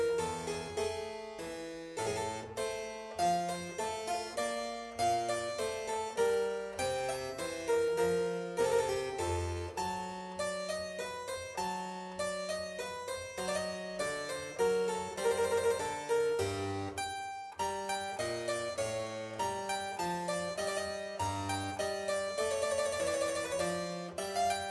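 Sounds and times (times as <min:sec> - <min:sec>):
keyboard sonata on piano: 0:00.0 - 0:24.6.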